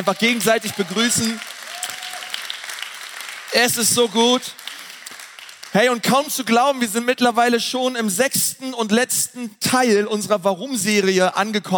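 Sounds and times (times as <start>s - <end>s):
speech: 0.0s - 1.5s, 3.6s - 4.6s, 5.7s - 11.7s
audience applause: 0.0s - 6.0s.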